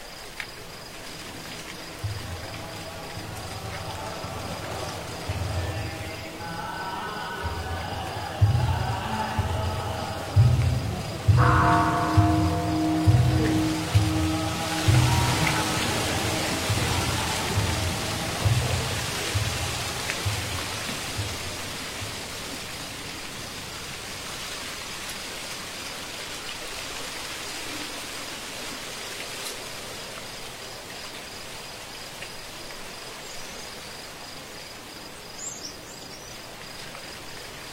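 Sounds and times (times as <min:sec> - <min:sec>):
insects chirping at night: 0:00.0 - 0:37.7
chanting of scriptures at night: 0:01.0 - 0:22.8
wooden fish drum in a temple: 0:07.4 - 0:22.2
ancient temple bell ringing on a moonlit night: 0:11.2 - 0:19.5.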